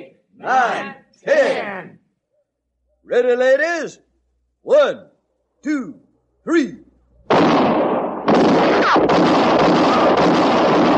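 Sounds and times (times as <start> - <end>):
speech: 0.4 - 1.9, 3.1 - 6.8
gunshots in a dramatized shooting: 7.3 - 10.9.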